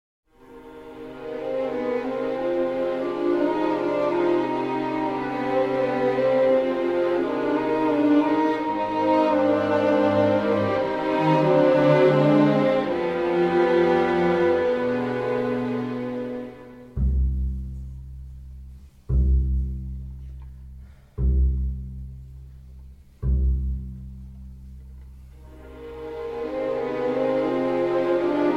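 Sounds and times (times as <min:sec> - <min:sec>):
slow string music: 0:00.3 - 0:28.5.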